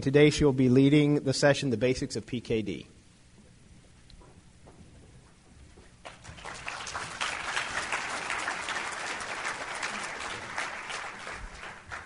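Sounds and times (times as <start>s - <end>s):
speech: 0.0s - 3.0s
audience applause: 6.1s - 12.0s.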